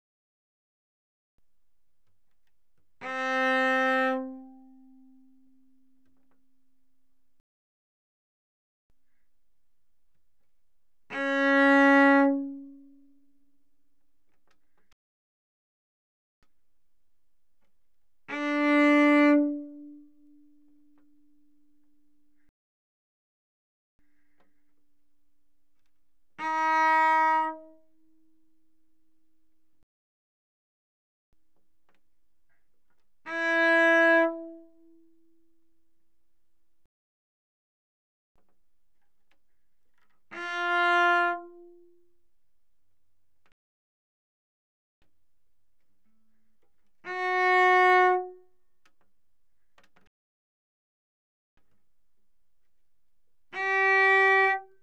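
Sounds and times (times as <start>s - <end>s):
bowed cello mezzo-forte on the D string C4 to Bb4: 2.3s - 6.4s, 10.4s - 13.4s, 17.6s - 22.5s, 25.8s - 28.8s, 31.9s - 35.6s, 39.3s - 42.2s, 46.8s - 48.5s, 53.4s - 54.8s.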